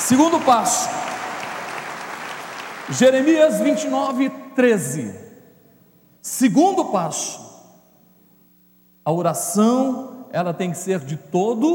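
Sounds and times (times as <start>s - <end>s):
audience applause: 0.0s - 3.7s
speech: 0.1s - 1.1s, 2.9s - 5.2s, 6.2s - 7.5s, 9.0s - 11.7s.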